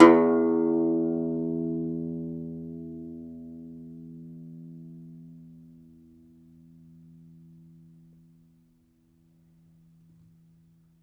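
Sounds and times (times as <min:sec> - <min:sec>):
domra plucked strings: 0:00.0 - 0:03.7.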